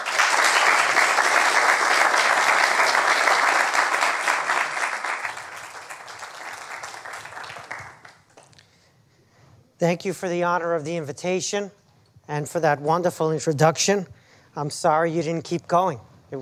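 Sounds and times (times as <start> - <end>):
large crowd applause welcoming a lecturer: 0.0 - 8.5
speech: 9.8 - 16.4.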